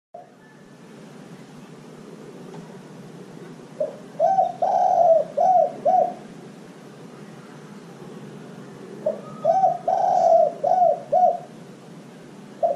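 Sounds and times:
dove cooing: 0:03.7 - 0:06.4, 0:09.0 - 0:11.6, 0:12.6 - 0:12.7.

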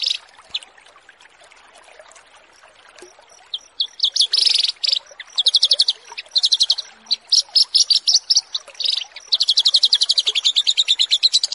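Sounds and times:
Horsfield's bush lark singing buzzy chirps: 0:03.5 - 0:11.5.

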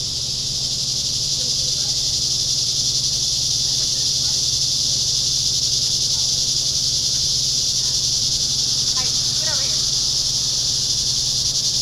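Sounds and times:
cicadas piercing hiss-like drone: 0:00.0 - 0:11.8.

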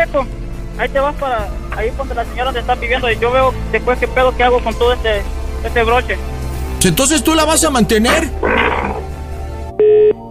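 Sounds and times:
speech: 0:00.0 - 0:09.0
steady mid-pitched electronic phone tone: 0:09.8 - 0:10.3.

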